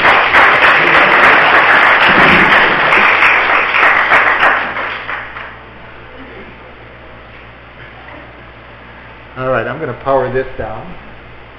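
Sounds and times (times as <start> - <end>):
audience applause: 0.0 - 5.6
speech: 9.9 - 11.1.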